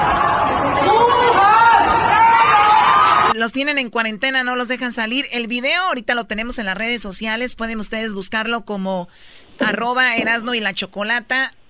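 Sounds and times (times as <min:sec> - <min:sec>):
people shouting to each other from buildings: 0:00.0 - 0:03.4
speech: 0:03.4 - 0:11.6.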